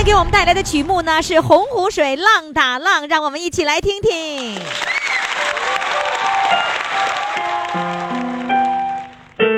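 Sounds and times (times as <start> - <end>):
speech: 0.0 - 5.0
audience applause: 4.4 - 9.4.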